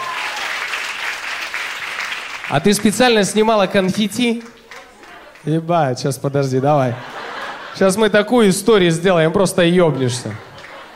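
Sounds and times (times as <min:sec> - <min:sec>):
audience applause: 0:00.0 - 0:05.6, 0:09.9 - 0:10.9
speech: 0:02.5 - 0:04.6, 0:05.4 - 0:07.1, 0:07.8 - 0:10.5
laughter: 0:06.4 - 0:10.9.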